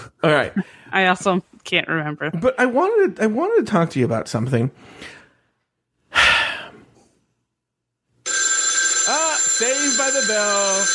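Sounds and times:
speech: 0:00.2 - 0:05.2, 0:09.6 - 0:10.9
short breathy sigh: 0:06.1 - 0:06.8
telephone ringing: 0:08.2 - 0:10.9.

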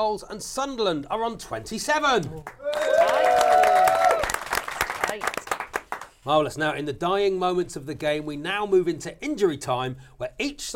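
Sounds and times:
speech: 0:00.0 - 0:03.3, 0:06.2 - 0:10.7
studio audience applause: 0:02.5 - 0:06.1.

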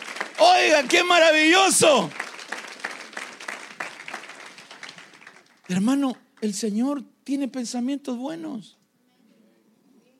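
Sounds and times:
audience applause: 0:00.0 - 0:06.1
speech: 0:00.4 - 0:02.2, 0:05.7 - 0:08.8.

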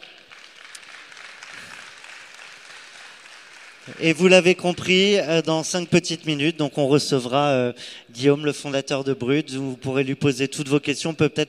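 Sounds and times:
audience applause: 0:00.0 - 0:06.3
speech: 0:03.9 - 0:11.4.

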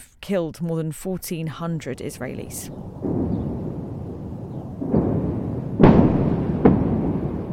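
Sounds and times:
speech: 0:00.2 - 0:03.1
explosions from bombings in Gaza: 0:02.7 - 0:07.5
low rumble: 0:02.7 - 0:07.5.

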